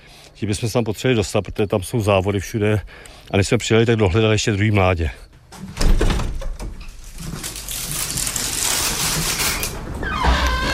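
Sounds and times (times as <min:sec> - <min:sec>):
speech: 0:00.4 - 0:05.7
aviary door opened carefully: 0:05.5 - 0:10.7.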